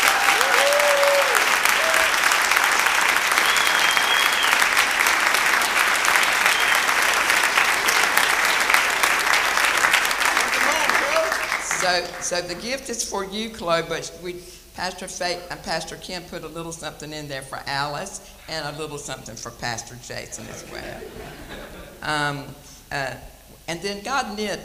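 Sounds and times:
applause welcoming a guest home at a church Pastor's Appreciation Day: 0.0s - 12.4s
speech: 11.9s - 24.6s
laughter: 20.4s - 22.1s.

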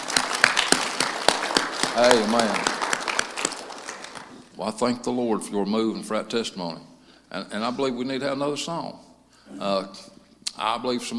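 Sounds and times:
applause: 0.0s - 4.5s
speech: 2.0s - 2.7s, 4.6s - 11.1s.

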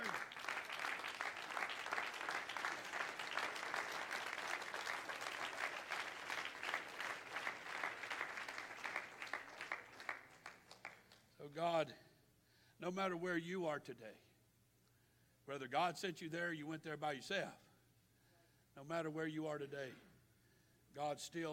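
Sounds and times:
audience clapping hands: 0.0s - 11.3s
speech: 11.6s - 12.0s, 12.8s - 14.3s, 15.5s - 17.6s, 18.8s - 20.1s, 21.0s - 21.5s.

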